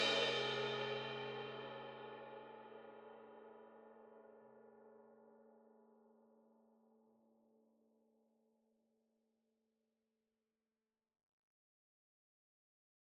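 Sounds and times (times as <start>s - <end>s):
cymbal crash swell with soft beater: 0.0s - 1.9s.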